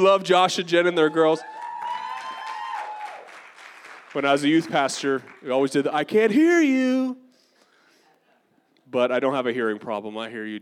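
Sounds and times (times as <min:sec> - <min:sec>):
speech: 0:00.0 - 0:01.6, 0:04.2 - 0:07.2, 0:08.9 - 0:10.6
audience applauding: 0:01.2 - 0:05.6.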